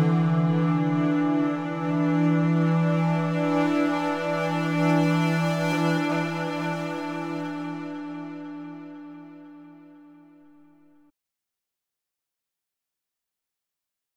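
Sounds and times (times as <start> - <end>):
ambient strings: 0.0 - 10.6.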